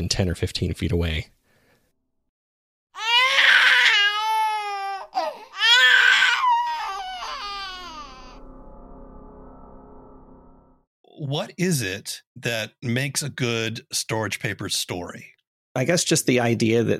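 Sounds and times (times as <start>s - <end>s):
speech: 0.0s - 1.4s, 11.2s - 16.9s
baby crying: 3.0s - 8.4s.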